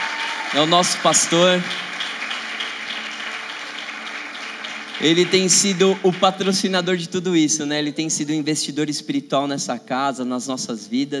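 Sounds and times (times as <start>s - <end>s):
crowd applauding: 0.0s - 7.3s
speech: 0.5s - 1.9s, 5.0s - 11.1s.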